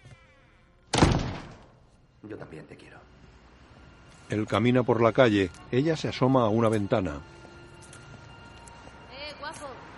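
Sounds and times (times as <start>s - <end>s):
apartment door closing: 0.9s - 1.8s
speech: 2.2s - 3.2s, 4.3s - 7.4s.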